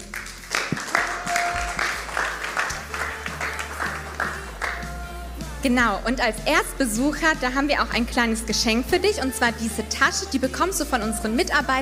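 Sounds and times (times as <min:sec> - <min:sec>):
audience applause: 0:00.0 - 0:04.9
speech: 0:05.6 - 0:11.8.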